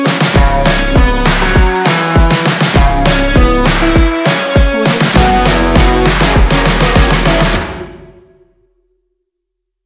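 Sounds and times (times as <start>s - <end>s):
action indie rock music: 0.0s - 7.6s.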